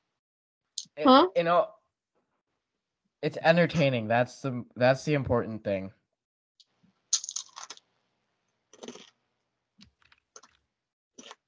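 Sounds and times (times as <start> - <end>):
speech: 1.0 - 1.8, 3.2 - 6.0
crunchy chips being eaten: 7.2 - 7.8, 8.8 - 9.1.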